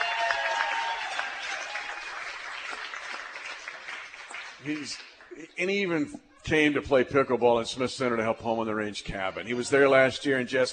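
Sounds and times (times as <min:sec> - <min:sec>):
crowd clapping: 0:00.0 - 0:05.4
speech: 0:04.6 - 0:10.7.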